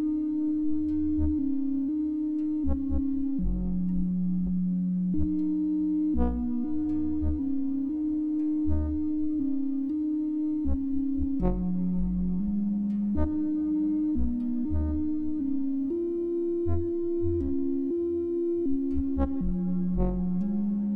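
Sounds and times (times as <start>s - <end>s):
ambience: 0.0s - 20.9s.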